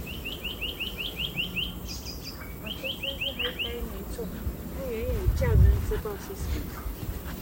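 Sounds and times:
soft twittering: 0:00.0 - 0:05.2
birds singing bright high chirps: 0:00.0 - 0:07.4.

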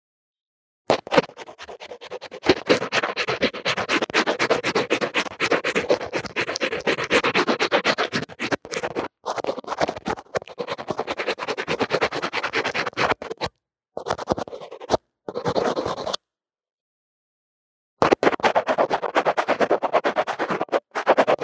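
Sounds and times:
drawing and makeup scratching strokes on a lo-fi earphone mic: 0:00.9 - 0:16.2, 0:18.0 - 0:21.4.

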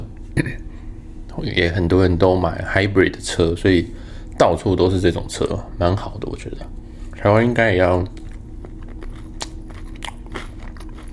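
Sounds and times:
low hum: 0:00.0 - 0:11.1
speech: 0:01.4 - 0:08.2
biting and chewing chicken strips: 0:08.0 - 0:11.1.

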